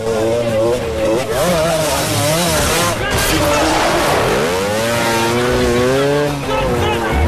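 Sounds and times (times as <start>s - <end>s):
scrambler motorcycle engine revving in a chase with police cars: 0.0s - 7.2s.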